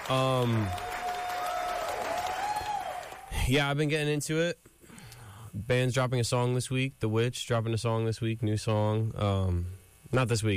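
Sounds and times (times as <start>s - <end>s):
crowd clapping: 0.0s - 3.4s
speech: 0.1s - 0.9s, 3.5s - 4.7s, 5.5s - 10.5s.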